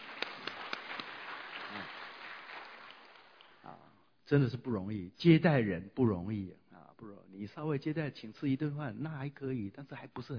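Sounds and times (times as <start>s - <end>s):
faint audience applause: 0.0s - 3.6s
speech: 3.7s - 10.3s.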